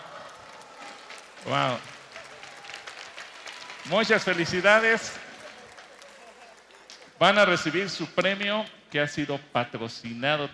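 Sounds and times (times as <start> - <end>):
audience applause: 0.0 - 7.7
speech: 1.4 - 1.9, 3.9 - 5.2, 7.2 - 10.5.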